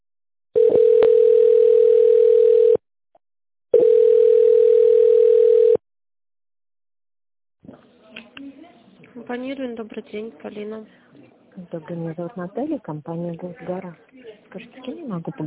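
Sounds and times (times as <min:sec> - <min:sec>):
telephone line tone while waiting on hold: 0:00.6 - 0:02.8, 0:03.7 - 0:05.8
speech: 0:09.3 - 0:11.0, 0:11.6 - 0:15.4.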